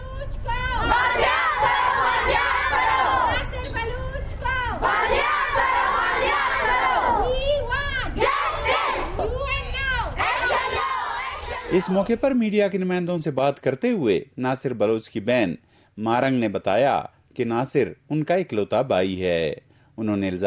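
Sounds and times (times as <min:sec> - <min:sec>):
protesters including women and children chanting slogans: 0:00.7 - 0:03.6, 0:04.6 - 0:12.0
speech: 0:11.8 - 0:20.4.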